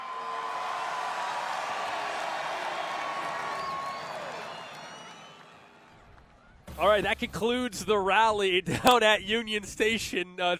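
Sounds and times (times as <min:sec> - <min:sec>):
rally crowd cheering: 0:00.0 - 0:07.6
speech: 0:06.8 - 0:10.5.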